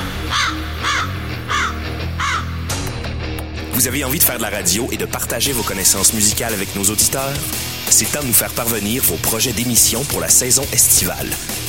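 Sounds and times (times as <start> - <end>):
birds singing: 0.0 - 2.6
speech: 3.8 - 11.6.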